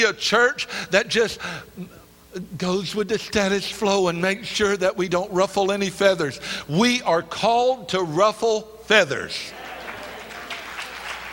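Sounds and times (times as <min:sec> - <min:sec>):
speech: 0:00.0 - 0:09.6
audience hand clapping: 0:09.5 - 0:11.3.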